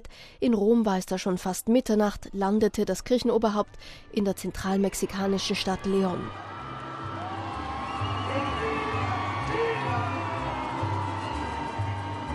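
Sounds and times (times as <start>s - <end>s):
speech: 0.1s - 6.5s
crowd cheering welcoming the Pope in Mexico: 5.0s - 12.3s.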